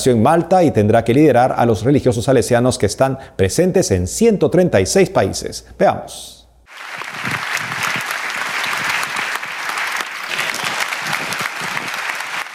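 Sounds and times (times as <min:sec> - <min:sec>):
speech: 0:00.0 - 0:07.4
audience applause: 0:06.7 - 0:12.5.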